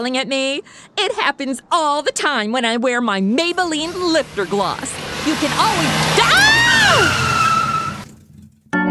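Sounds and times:
speech: 0.0 - 7.2
car skidding with tire screech: 3.5 - 8.7
tonal blasts: 3.5 - 8.8.

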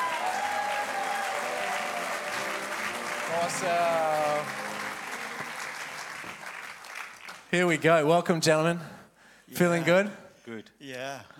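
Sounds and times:
audience applause welcoming a guest onto the stage: 0.0 - 7.5
speech: 3.3 - 4.8, 7.5 - 8.9, 9.5 - 11.3.

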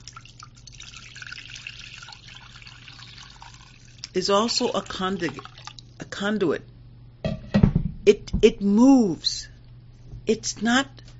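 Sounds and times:
water being poured into a bowl: 0.0 - 6.0
low constant hum: 0.0 - 11.1
speech: 4.2 - 5.6, 6.2 - 6.7, 8.0 - 9.5, 10.3 - 11.0.

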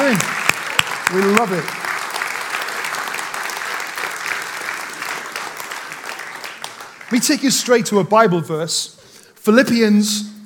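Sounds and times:
audience applause: 0.0 - 7.9
speech: 0.1 - 0.4, 1.1 - 1.8, 7.1 - 10.3.

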